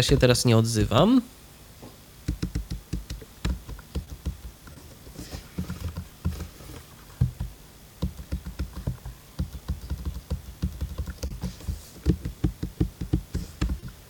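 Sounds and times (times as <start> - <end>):
speech: 0.0 - 1.4
typing on a laptop keyboard: 2.2 - 5.0, 5.6 - 6.6, 7.2 - 14.0.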